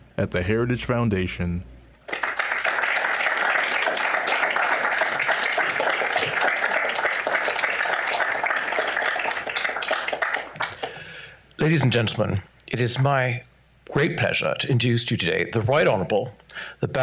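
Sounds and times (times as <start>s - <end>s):
speech: 0.2s - 1.7s, 11.6s - 17.0s
audience applause welcoming a speaker at a trade relations program: 2.1s - 11.1s.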